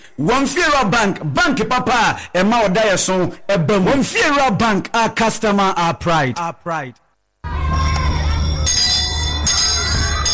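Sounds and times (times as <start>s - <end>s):
speech: 0.2s - 7.0s
school bell ringing: 7.7s - 10.3s.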